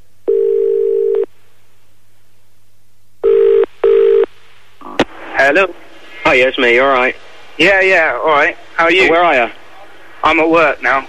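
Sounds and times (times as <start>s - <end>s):
telephone call ringing tone: 0.3s - 1.3s, 3.2s - 4.3s
speech: 5.5s - 9.6s, 10.2s - 11.0s.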